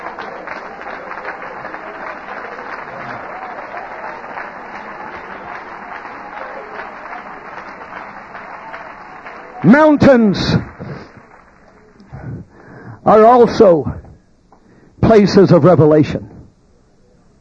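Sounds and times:
crowd clapping: 0:00.0 - 0:12.8
speech: 0:09.6 - 0:10.6, 0:13.1 - 0:13.9, 0:15.1 - 0:16.3.

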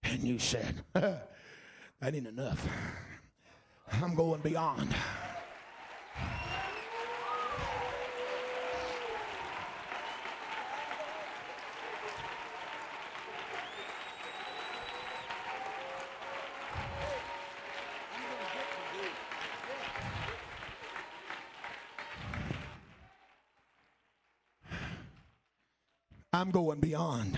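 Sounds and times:
speech: 0:00.2 - 0:03.2, 0:03.9 - 0:05.2, 0:26.4 - 0:27.3
crowd clapping hands in praise: 0:04.0 - 0:25.6
crowd cheering and whooping: 0:04.2 - 0:23.3.

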